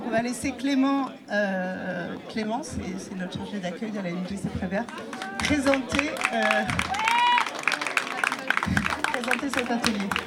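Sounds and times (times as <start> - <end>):
speech: 0.1 - 7.0, 8.7 - 10.2
audience applause and cheering at a Bollywood dance workshop presentation: 5.1 - 10.2
crowd whooping: 6.2 - 7.6.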